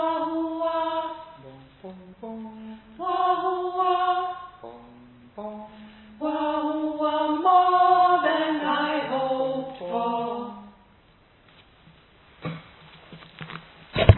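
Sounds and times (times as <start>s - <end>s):
mezzo-soprano singing: 0.0s - 10.9s.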